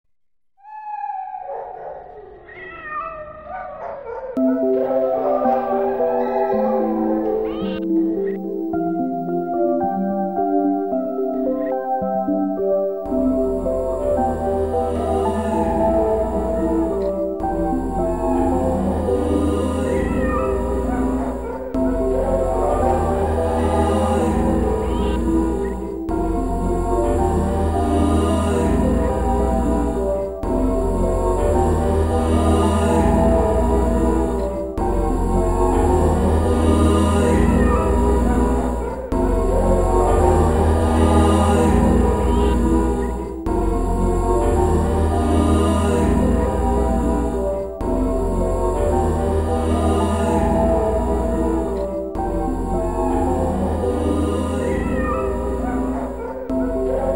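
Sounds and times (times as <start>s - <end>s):
music: 4.4s - 57.1s.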